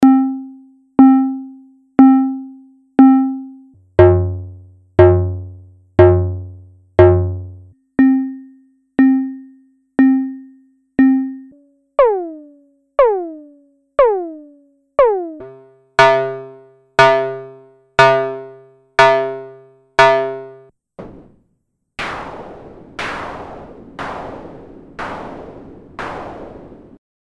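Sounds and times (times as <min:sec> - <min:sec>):
SY-1M synthesizer VCO modes: 0:00.0 - 0:20.6.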